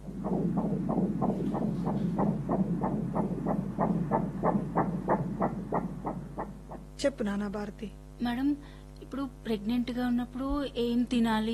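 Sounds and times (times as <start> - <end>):
baby's heartbeat checked during pregnancy: 0.0 - 7.0
low constant hum: 0.0 - 11.5
speech: 7.0 - 11.5.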